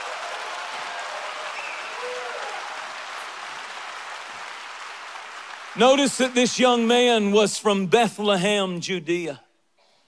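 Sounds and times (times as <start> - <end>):
audience clapping: 0.0 - 7.8
speech: 5.8 - 9.4.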